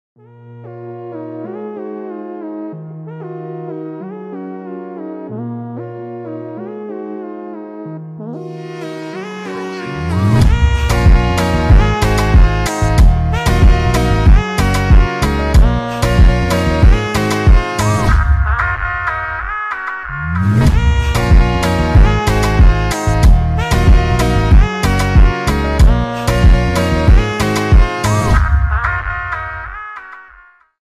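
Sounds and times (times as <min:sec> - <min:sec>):
instrumental music: 0:00.2 - 0:30.7.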